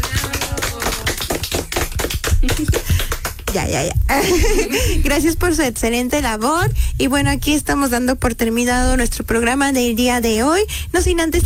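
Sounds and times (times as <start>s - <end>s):
audience applause: 0.0s - 3.6s
speech: 3.6s - 11.4s
laughter: 4.1s - 5.1s.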